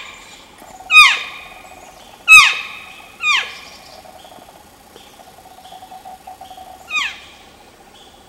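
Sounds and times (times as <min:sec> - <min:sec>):
elk calf calling while seeking: 0:00.6 - 0:07.1.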